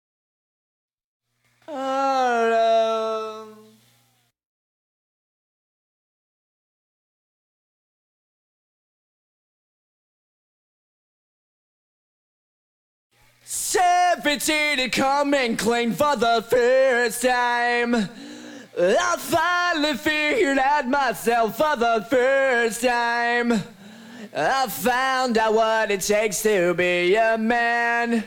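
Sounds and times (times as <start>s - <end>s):
person singing: 1.7s - 3.8s, 13.5s - 28.2s.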